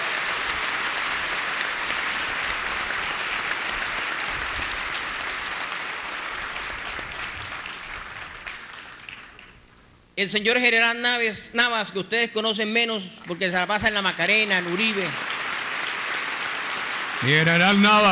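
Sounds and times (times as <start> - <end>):
audience applause: 0.0 - 9.6, 13.9 - 18.1
speech: 10.2 - 15.2, 17.2 - 18.1.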